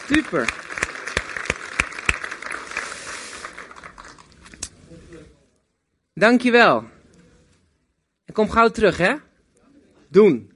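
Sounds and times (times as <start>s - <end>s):
crowd clapping: 0.0s - 4.7s
speech: 0.1s - 0.6s, 6.2s - 6.9s, 8.4s - 9.2s, 10.1s - 10.5s.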